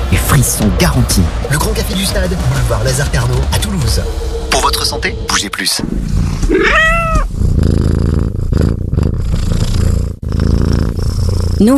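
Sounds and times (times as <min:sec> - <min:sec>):
speech: 0:00.4 - 0:07.8, 0:11.6 - 0:11.7
big cat purring and growling: 0:05.8 - 0:11.7.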